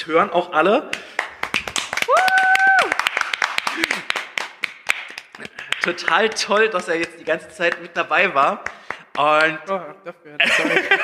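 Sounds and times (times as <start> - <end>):
speech: 0.0 - 1.2, 5.8 - 11.0
hearty applause: 1.2 - 7.2
laughter: 10.4 - 11.0.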